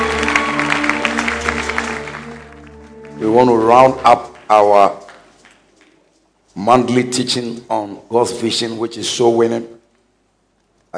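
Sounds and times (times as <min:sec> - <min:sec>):
audience clapping hands: 0:00.0 - 0:06.9
speech: 0:03.2 - 0:05.0, 0:06.6 - 0:09.8.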